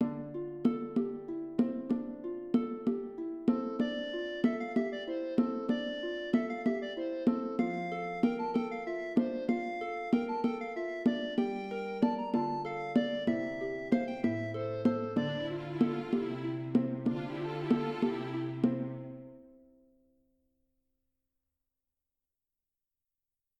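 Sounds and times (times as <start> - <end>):
medieval music: 0.0 - 19.6.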